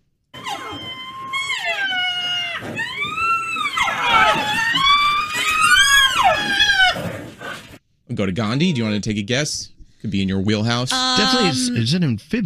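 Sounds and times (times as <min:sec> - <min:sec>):
baby rhinos crying for milk: 0:00.4 - 0:07.1
speech: 0:08.2 - 0:12.4.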